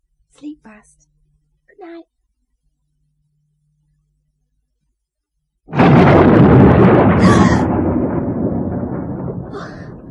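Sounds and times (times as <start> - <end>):
speech: 0.6 - 1.1, 1.8 - 2.1
thunder clap rolling and rumbling in a thunderstorm: 5.7 - 10.0.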